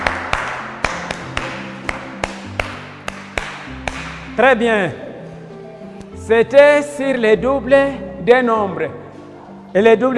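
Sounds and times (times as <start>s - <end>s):
classroom applause: 0.0s - 4.1s
speech: 4.4s - 5.0s, 6.3s - 9.0s, 9.7s - 10.1s.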